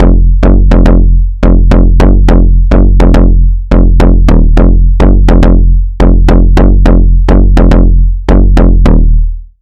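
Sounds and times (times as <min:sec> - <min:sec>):
bass: 0:00.0 - 0:09.6.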